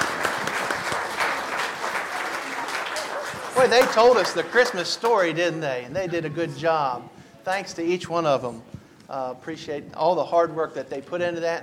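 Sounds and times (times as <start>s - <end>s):
round of applause: 0.0s - 5.3s
speech: 3.6s - 11.6s.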